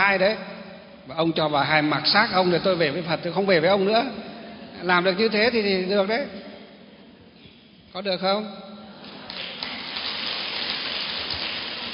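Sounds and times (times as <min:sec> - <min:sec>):
speech: 0:00.1 - 0:06.4, 0:07.9 - 0:08.7
audience applause: 0:09.0 - 0:11.9.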